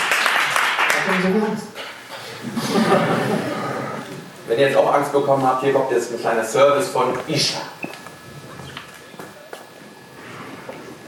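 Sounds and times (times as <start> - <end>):
audience applause: 0.0 - 1.5
speech: 1.1 - 1.8, 4.5 - 8.0
laughter: 2.2 - 4.4.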